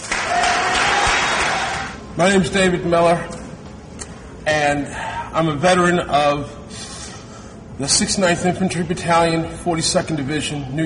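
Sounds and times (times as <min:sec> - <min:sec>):
audience applause: 0:00.0 - 0:02.0
speech: 0:02.2 - 0:03.4, 0:04.5 - 0:06.8, 0:07.8 - 0:10.8.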